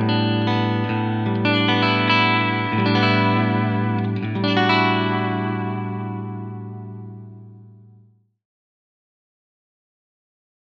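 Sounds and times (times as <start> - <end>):
Quilter Superblock US Model 61 clean amp tone: 0.0 - 8.2.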